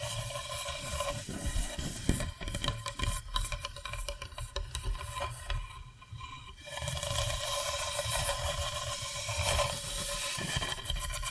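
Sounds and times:
tapping and scratching: 0:00.0 - 0:11.2.

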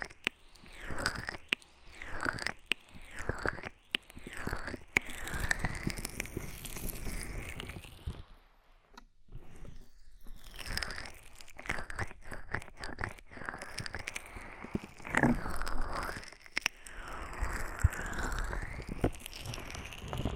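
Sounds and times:
ear massage with oil and foam: 0:00.0 - 0:08.3, 0:09.4 - 0:20.3.

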